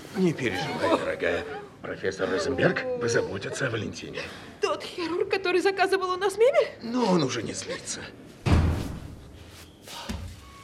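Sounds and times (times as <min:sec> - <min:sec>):
speech: 0:00.2 - 0:08.4
dull thud of someone bumping into a chair: 0:08.4 - 0:09.2.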